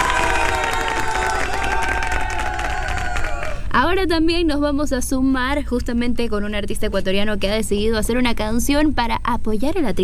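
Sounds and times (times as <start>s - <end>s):
crowd clapping: 0.0s - 3.7s
shouts and whistles: 0.0s - 3.7s
speech: 3.8s - 10.0s.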